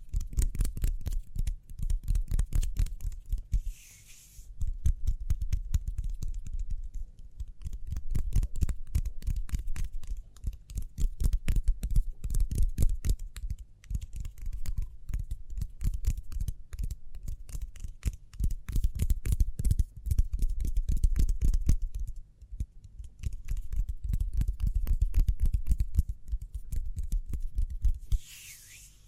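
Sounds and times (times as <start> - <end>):
fast hands rubbing and tapping: 0.0 - 29.0
hissy swishes: 28.1 - 29.0.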